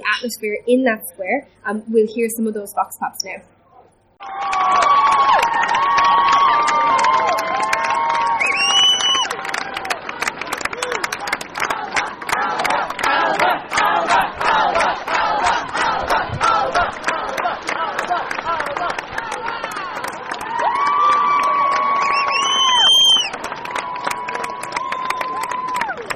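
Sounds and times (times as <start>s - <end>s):
speech: 0.1s - 3.5s
large crowd clapping in a square: 4.2s - 26.1s
high whistles: 8.3s - 9.4s, 21.8s - 23.4s.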